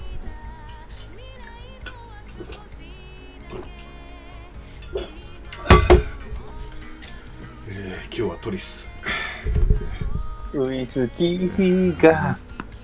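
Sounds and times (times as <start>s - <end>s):
faint steady hum: 0.0s - 12.8s
glasses clinking in a toast: 4.8s - 7.0s
speech: 8.2s - 9.6s, 10.6s - 12.4s.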